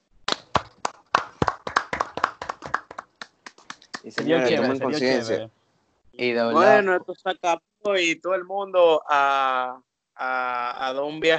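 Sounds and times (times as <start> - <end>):
hand clapping: 0.3 - 4.8
speech: 4.0 - 5.6, 6.2 - 11.3.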